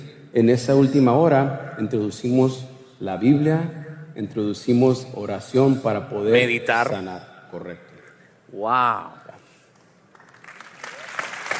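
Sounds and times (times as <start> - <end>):
speech: 0.3 - 7.9, 8.5 - 9.2
audience applause: 10.2 - 11.5.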